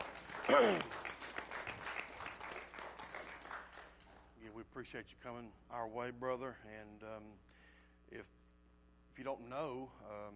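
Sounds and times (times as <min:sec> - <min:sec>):
crowd applause: 0:00.0 - 0:04.3
speech: 0:00.5 - 0:01.0, 0:04.8 - 0:07.5, 0:08.1 - 0:08.4, 0:09.2 - 0:10.3.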